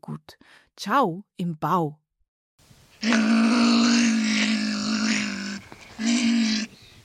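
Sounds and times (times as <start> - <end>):
speech: 0.0 - 2.0, 3.0 - 3.8
European pine marten making harsh buzzy drawn-out cries: 3.0 - 7.0.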